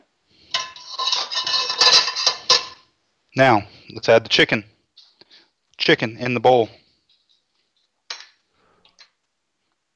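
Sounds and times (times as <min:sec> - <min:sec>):
utensil scraping and clinking serving pasta into a bowl: 0:00.4 - 0:02.8
speech: 0:03.4 - 0:04.7, 0:05.8 - 0:06.8.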